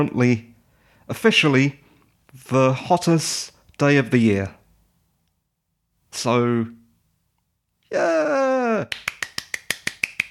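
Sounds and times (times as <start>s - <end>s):
speech: 0.0s - 0.5s, 1.1s - 4.6s, 6.1s - 6.8s, 7.9s - 9.1s
hands clapping in a quick steady rhythm: 8.8s - 10.2s.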